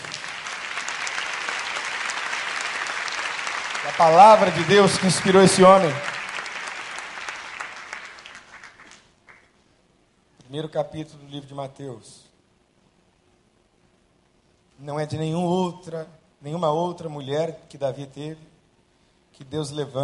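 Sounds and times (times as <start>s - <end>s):
audience applause: 0.0s - 9.4s
speech: 3.9s - 6.1s, 10.5s - 12.3s, 14.8s - 18.5s, 19.4s - 20.0s.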